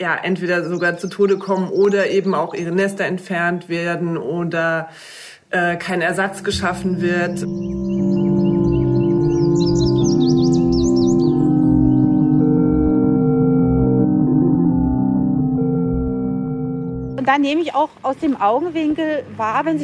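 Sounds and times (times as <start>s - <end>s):
house sparrow chirps: 0.0s - 4.0s, 6.4s - 13.0s
speech: 0.0s - 7.8s, 17.3s - 19.8s
humming drone: 6.5s - 17.2s.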